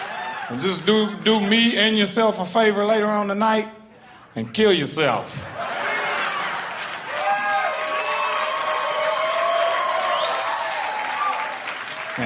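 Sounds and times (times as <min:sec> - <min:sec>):
crowd whooping and cheering: 0:00.0 - 0:01.7, 0:05.5 - 0:12.2
laughter: 0:00.0 - 0:08.4, 0:11.1 - 0:12.2
speech: 0:00.5 - 0:03.8, 0:04.4 - 0:05.7
audience clapping: 0:06.4 - 0:12.2.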